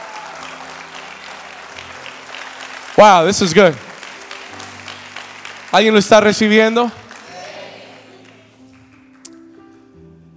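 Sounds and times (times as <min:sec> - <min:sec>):
congregation applause during a church service: 0:00.0 - 0:09.6
speech: 0:03.0 - 0:03.8, 0:05.7 - 0:07.0.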